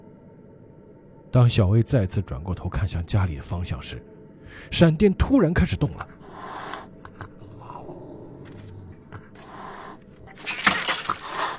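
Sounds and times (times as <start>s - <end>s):
speech: 1.3s - 6.5s
cat hissing with hostility: 6.2s - 11.5s.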